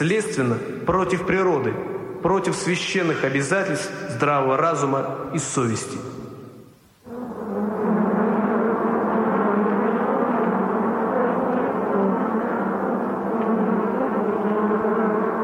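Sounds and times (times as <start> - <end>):
speech: 0.0 - 6.2
flies buzzing: 6.8 - 15.4.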